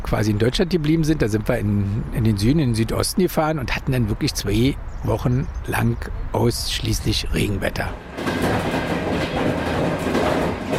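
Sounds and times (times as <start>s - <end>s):
speech: 0.1s - 9.4s
train rumbling on tracks: 7.1s - 10.7s
train wheels clickety-clack on rail joints: 7.5s - 10.7s.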